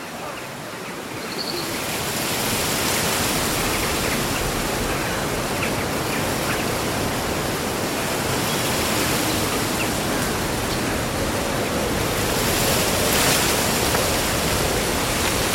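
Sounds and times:
summer wind sweeping through rustling leaves: 0.0s - 15.5s
bird chirp: 1.2s - 1.8s.

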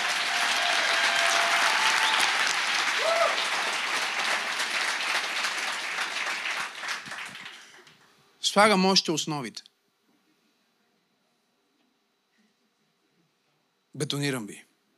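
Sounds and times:
audience applause: 0.0s - 8.1s
speech: 8.5s - 9.7s, 14.0s - 14.7s.

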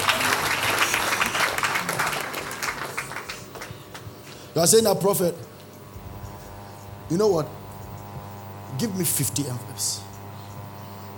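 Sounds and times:
audience applause for a preacher: 0.0s - 4.1s
speech: 4.6s - 5.5s, 7.1s - 7.6s, 8.7s - 10.1s.

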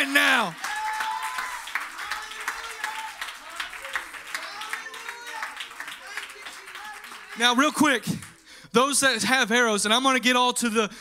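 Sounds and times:
voices cheering: 0.0s - 8.2s
audience clapping hands: 0.0s - 8.6s
speech: 0.4s - 0.6s, 7.4s - 11.0s.

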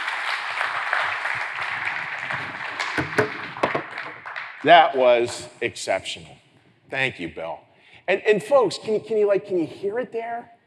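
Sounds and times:
round of applause: 0.0s - 5.4s
speech: 4.6s - 10.6s.

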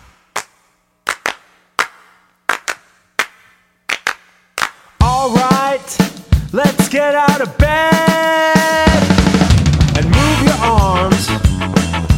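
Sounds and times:
hands clapping along to song: 0.0s - 5.0s
loud sung melody with music: 5.0s - 12.1s
speech: 6.5s - 8.8s.

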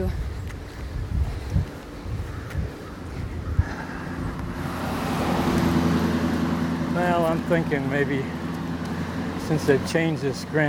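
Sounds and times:
car approaching: 0.0s - 10.6s
speech: 7.5s - 8.4s, 9.5s - 10.6s.

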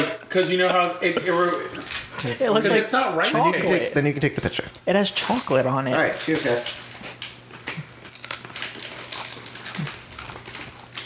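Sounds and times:
speech: 0.0s - 6.8s
crunching on a corn cake: 1.6s - 2.4s, 4.3s - 11.0s.

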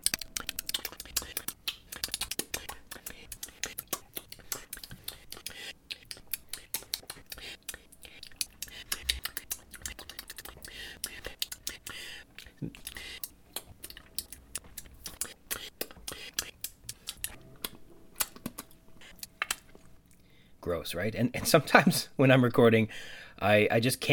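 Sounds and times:
breathy mouth noise: 0.0s - 17.4s
tongue clicks: 0.0s - 20.2s
speech: 20.6s - 24.1s.

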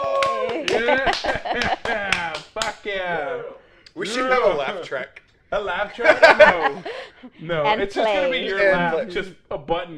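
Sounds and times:
laughter: 0.0s - 2.9s, 5.8s - 8.8s
studio audience applause: 0.0s - 3.0s
speech: 0.8s - 9.9s.

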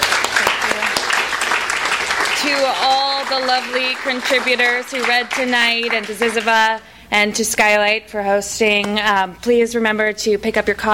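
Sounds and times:
room full of people applauding: 0.0s - 6.6s
speech: 2.4s - 10.9s.

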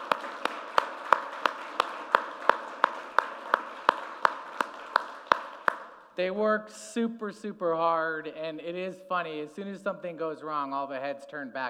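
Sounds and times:
audience applause: 0.0s - 6.0s
sharp claps: 0.0s - 6.1s
speech: 6.2s - 11.6s.

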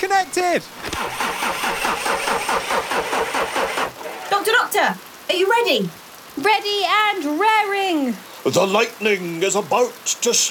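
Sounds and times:
speech: 0.0s - 3.2s, 4.7s - 10.5s
engine cranking: 0.0s - 4.0s.

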